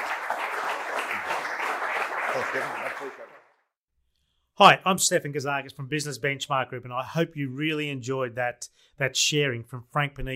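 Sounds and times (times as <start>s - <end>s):
audience applause: 0.0s - 3.6s
speech: 2.4s - 3.4s, 4.6s - 10.3s.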